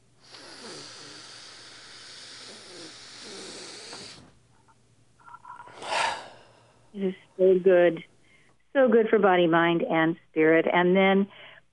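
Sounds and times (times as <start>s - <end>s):
deep breath in and out: 0.2s - 4.4s, 5.6s - 7.0s
speech: 7.0s - 8.1s, 8.7s - 11.4s.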